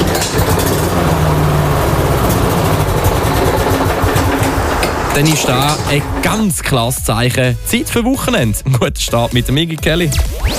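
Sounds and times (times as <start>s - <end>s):
lawn mower engine struggling: 0.0s - 6.8s
speech: 5.2s - 10.5s.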